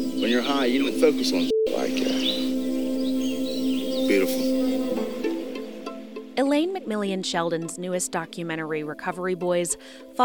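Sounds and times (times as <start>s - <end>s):
birds singing outdoors: 0.0s - 6.3s
speech: 0.2s - 2.6s, 4.1s - 4.5s, 6.4s - 10.2s.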